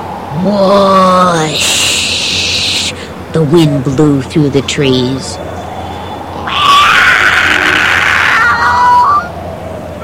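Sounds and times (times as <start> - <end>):
speech: 0.4 - 2.2, 3.3 - 5.5
alley cat screaming at night: 6.4 - 9.4.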